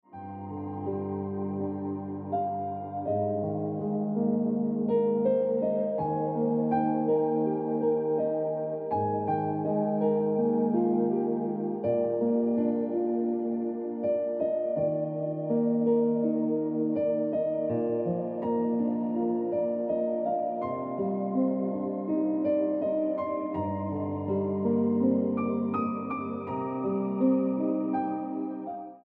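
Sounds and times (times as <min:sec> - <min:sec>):
piano ringtone music: 0:00.0 - 0:29.0.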